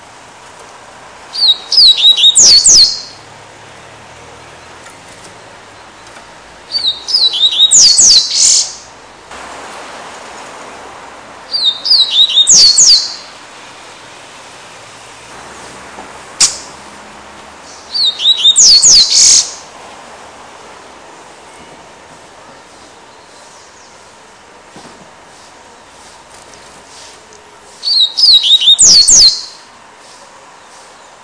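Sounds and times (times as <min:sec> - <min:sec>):
Double-collared Seedeater singing: 0:01.3 - 0:03.2, 0:06.7 - 0:08.9, 0:11.5 - 0:13.3, 0:17.7 - 0:19.6, 0:27.8 - 0:29.7
sharp click: 0:16.4 - 0:16.7.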